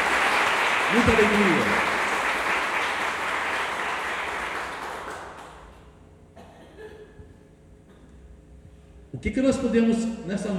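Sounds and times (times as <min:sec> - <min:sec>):
audience applauding: 0:00.0 - 0:05.9
speech: 0:00.9 - 0:01.9, 0:09.2 - 0:10.5.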